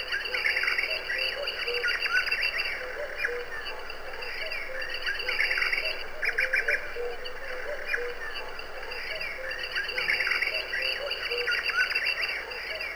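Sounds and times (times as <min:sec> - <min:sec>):
birds chirping: 0:00.1 - 0:12.8.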